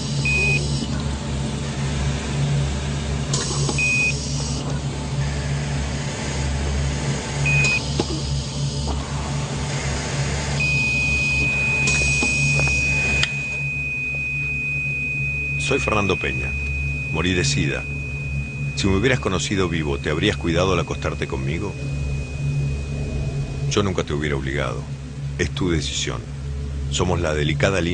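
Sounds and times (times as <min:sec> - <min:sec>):
heart monitor beeping: 0:00.0 - 0:00.9, 0:03.4 - 0:05.4, 0:07.4 - 0:09.2, 0:10.6 - 0:23.8
low mechanical hum: 0:00.0 - 0:27.9
speech: 0:15.7 - 0:16.6, 0:17.2 - 0:18.0, 0:18.8 - 0:22.0, 0:23.7 - 0:27.9.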